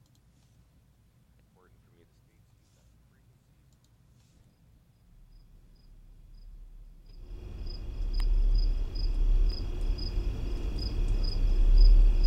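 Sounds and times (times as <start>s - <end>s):
Windsor Hum low-frequency droning hum: 5.3s - 12.2s.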